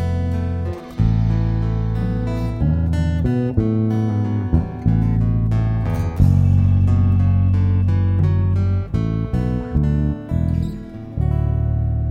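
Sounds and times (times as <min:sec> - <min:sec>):
Asian jazz performance intro: 0:00.0 - 0:12.0.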